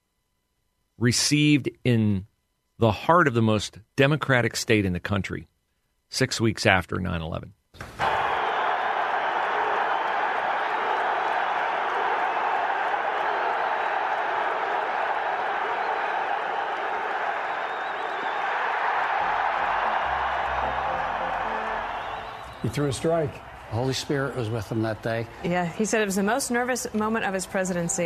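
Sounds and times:
speech: 1.0s - 5.5s, 6.1s - 8.0s, 22.7s - 28.0s
stadium crowd cheering and applauding: 7.8s - 28.0s
scattered whoops: 8.0s - 23.8s.

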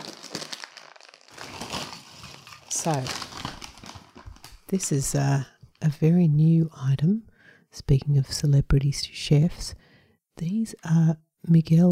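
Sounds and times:
chip packet rustling: 0.0s - 4.7s
speech: 2.8s - 3.3s, 4.7s - 9.8s, 10.4s - 11.9s.

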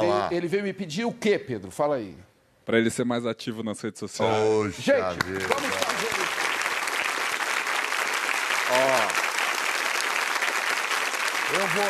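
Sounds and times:
speech: 0.0s - 6.2s, 11.7s - 11.8s
crowd applause: 5.2s - 11.8s.

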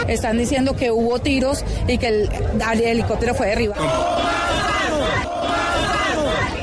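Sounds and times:
speech: 0.1s - 4.4s
large protest crowd chanting in unison: 3.7s - 6.6s.

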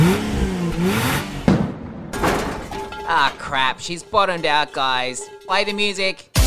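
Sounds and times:
racing car engine revving, drag racing sound effect: 0.0s - 1.6s
speech: 3.8s - 6.3s.

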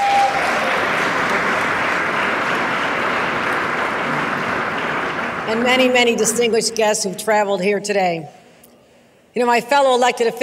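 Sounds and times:
audience applause: 0.0s - 6.0s
speech: 5.5s - 8.4s, 9.3s - 10.4s.

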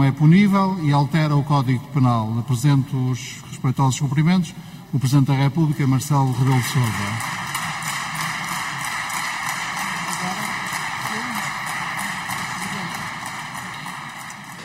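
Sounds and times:
speech: 0.0s - 7.4s
applause in parliament: 6.1s - 14.6s.

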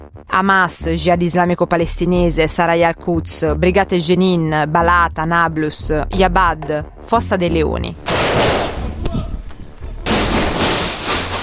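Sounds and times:
speech: 0.2s - 8.0s
gunfire during Israeli military raid: 8.0s - 9.0s, 10.0s - 11.4s.

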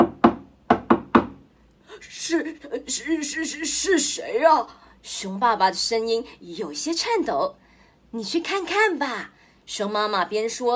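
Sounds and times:
knocking on a door: 0.0s - 1.4s
speech: 2.0s - 10.7s.

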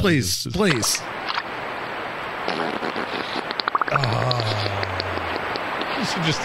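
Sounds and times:
speech: 0.0s - 1.2s, 3.9s - 5.0s, 6.0s - 6.4s
beaver passing gas underwater: 2.4s - 5.9s
bubbles in water from beaver: 3.5s - 5.3s.

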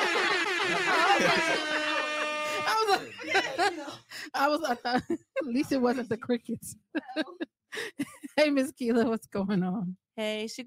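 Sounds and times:
air horn blaring: 0.0s - 3.1s
people chattering and laughing: 0.0s - 7.5s
speech: 0.7s - 1.8s, 2.9s - 10.6s.

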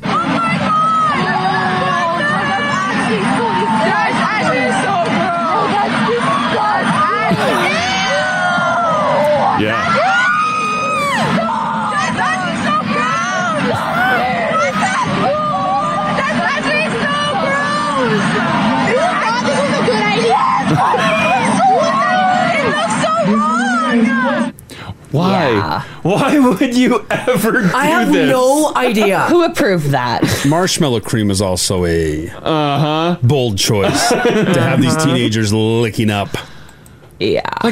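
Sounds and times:
students shouting in a crowd: 0.0s - 24.5s, 27.7s - 29.5s
laughter: 7.0s - 8.3s, 13.6s - 15.5s, 20.4s - 22.6s, 25.2s - 30.8s, 32.5s - 36.4s
speech: 25.2s - 36.5s, 37.2s - 37.6s.

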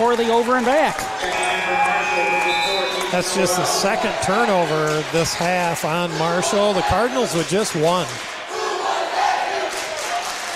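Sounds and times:
speech: 0.0s - 8.3s
student section crowd chanting: 1.1s - 7.4s, 8.2s - 10.4s.

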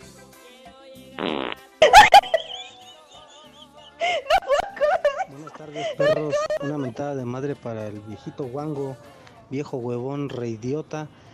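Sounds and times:
cartoonish fart sound effects: 1.2s - 2.6s
laughter: 1.8s - 7.0s
speech: 5.6s - 11.2s.

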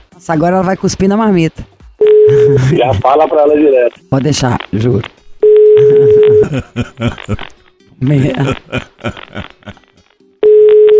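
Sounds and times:
speech: 0.2s - 1.7s, 2.3s - 5.1s, 5.8s - 9.8s
telephone ringing tone: 2.0s - 2.7s, 5.4s - 6.4s, 10.4s - 10.9s
laughter: 6.0s - 7.6s, 8.2s - 9.9s.

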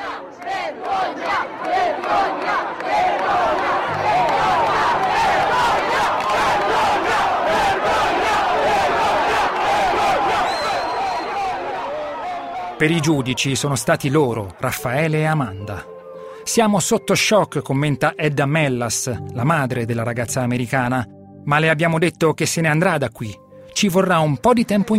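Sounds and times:
crowd shouting outside a courthouse: 0.0s - 14.7s
speech: 12.8s - 24.9s.

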